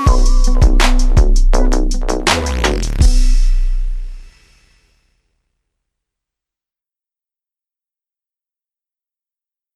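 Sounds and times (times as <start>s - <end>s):
31Hz tone: 0.0s - 4.3s.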